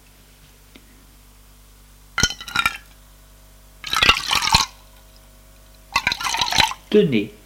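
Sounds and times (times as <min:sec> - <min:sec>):
water poured into a glass: 0:03.8 - 0:04.8, 0:06.0 - 0:06.8.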